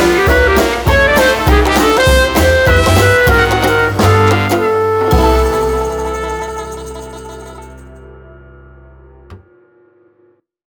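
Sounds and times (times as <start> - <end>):
1940s dixieland jazz: 0.0 - 8.4.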